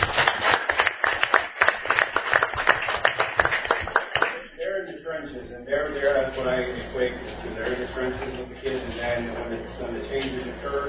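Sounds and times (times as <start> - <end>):
audience clapping: 0.0 - 4.5
speech: 5.6 - 10.8.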